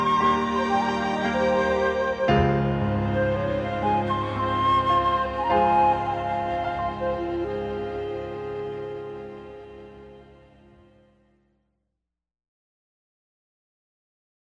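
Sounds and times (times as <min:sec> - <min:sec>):
instrumental music: 0:00.0 - 0:11.2.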